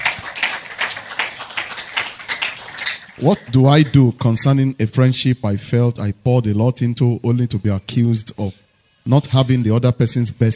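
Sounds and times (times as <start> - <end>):
people clapping in time: 0.0 - 4.0
speech: 3.2 - 10.5.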